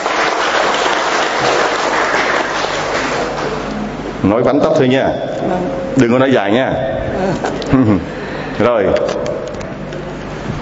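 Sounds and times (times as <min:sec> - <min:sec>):
church congregation applauding: 0:00.0 - 0:03.7
speech: 0:04.2 - 0:09.2.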